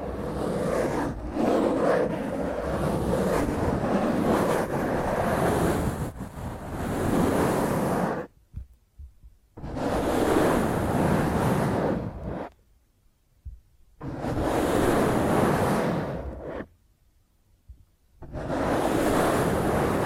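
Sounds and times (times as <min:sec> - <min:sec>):
fingernails scratching a microphone: 0:00.0 - 0:08.3, 0:09.6 - 0:12.6, 0:14.0 - 0:16.8, 0:18.2 - 0:20.0.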